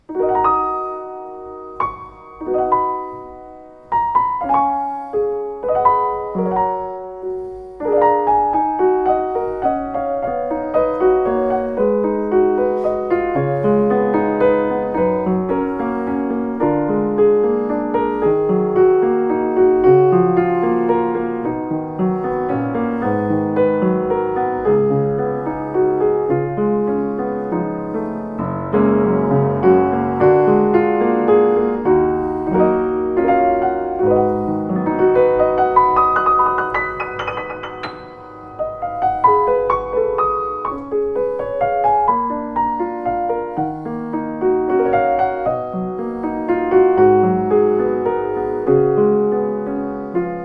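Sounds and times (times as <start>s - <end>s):
Kawai E200 piano: 0.0s - 50.4s.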